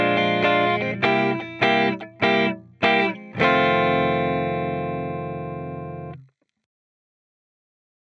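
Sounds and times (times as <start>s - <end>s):
electric guitar lead backing track: 0.0s - 6.2s.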